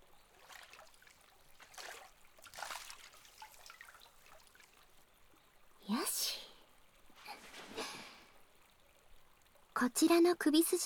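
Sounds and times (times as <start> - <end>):
hand towel rinsed in a tub of hot spring water: 0.4 - 4.8
speech: 9.8 - 10.8.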